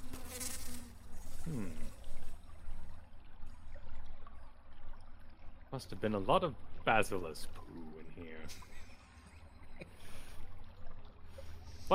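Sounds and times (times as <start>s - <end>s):
bugs scuttling and rustling in a dark dirt-floored room: 0.0s - 2.3s
bugs buzzing in a dark dirt-floored room: 0.0s - 2.9s
speech: 5.7s - 8.8s.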